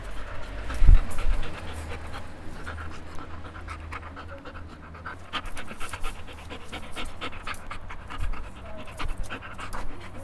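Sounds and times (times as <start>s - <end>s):
dog breathing in uneven low breaths: 0.0s - 10.2s.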